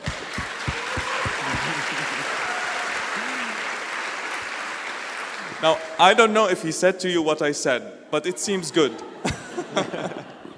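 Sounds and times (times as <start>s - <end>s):
laughter: 0.0s - 3.8s, 9.2s - 10.5s
audience applause: 0.0s - 5.9s
speech: 5.6s - 10.2s.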